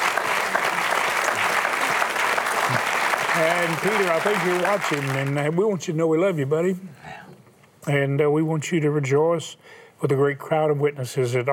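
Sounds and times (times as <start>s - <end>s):
audience applause: 0.0s - 5.6s
speech: 3.4s - 7.0s, 7.9s - 11.5s.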